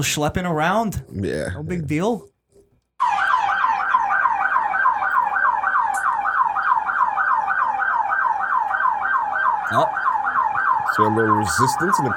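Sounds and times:
speech: 0.0s - 2.3s, 9.7s - 10.0s, 11.0s - 12.1s
siren: 3.0s - 12.1s.

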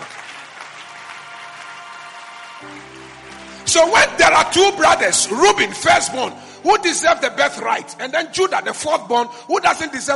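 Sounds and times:
audience clapping: 0.0s - 6.3s
speech: 2.6s - 10.1s.

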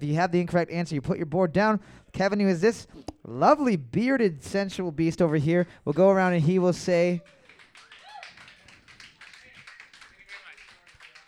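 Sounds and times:
speech: 0.0s - 7.4s
audience clapping: 5.3s - 11.2s.

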